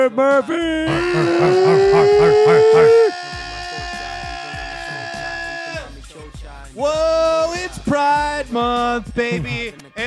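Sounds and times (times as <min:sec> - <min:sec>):
speech: 0:00.2 - 0:03.0, 0:08.0 - 0:10.0
laughter: 0:00.2 - 0:03.2
dogs howling: 0:00.9 - 0:03.2.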